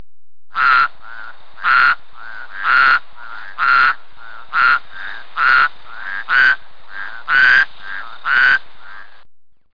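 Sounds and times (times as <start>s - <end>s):
toads calling: 0.5s - 9.2s.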